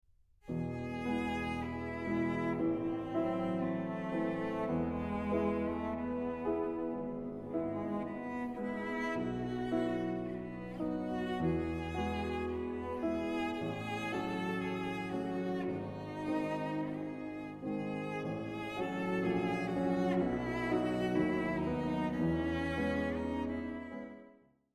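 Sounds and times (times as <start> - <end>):
piano quartet: 0.5 - 24.3.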